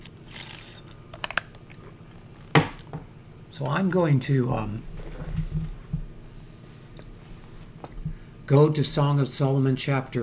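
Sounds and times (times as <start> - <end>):
person taking a drink of water: 0.0 - 2.4
low steady hum: 0.0 - 10.2
speech: 3.6 - 4.9, 8.5 - 10.2.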